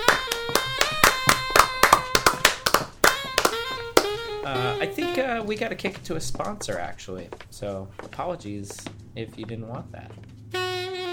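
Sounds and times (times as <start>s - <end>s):
audience applause with sharp claps: 0.0s - 5.2s
speech: 4.5s - 10.3s.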